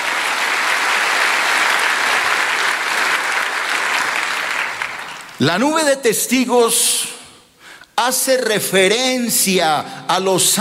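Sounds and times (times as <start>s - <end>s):
audience applause: 0.0s - 5.4s
speech: 5.4s - 7.1s, 8.0s - 10.6s.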